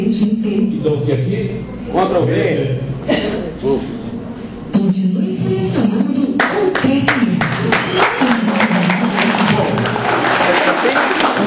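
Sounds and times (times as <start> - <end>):
speech: 0.0 - 3.9
faint murmur of voices: 0.0 - 11.4
half-hearted applause from a small group: 6.4 - 11.4.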